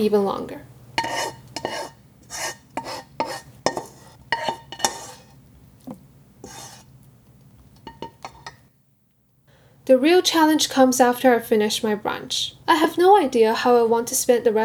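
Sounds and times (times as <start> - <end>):
speech: 0.0 - 0.7, 9.9 - 14.6
low steady hum: 0.0 - 14.6
utensil stirring in a metal pot: 1.0 - 5.4, 6.4 - 7.0
pot lid clatter: 2.8 - 5.3, 7.9 - 8.6.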